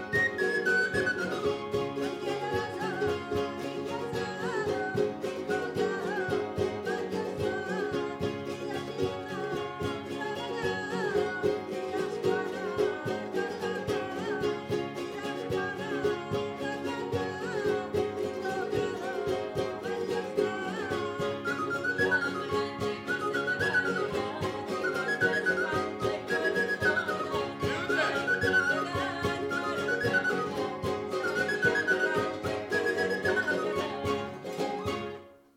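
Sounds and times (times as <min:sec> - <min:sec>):
flabiol playing jota folk dance music: 0:00.0 - 0:35.5.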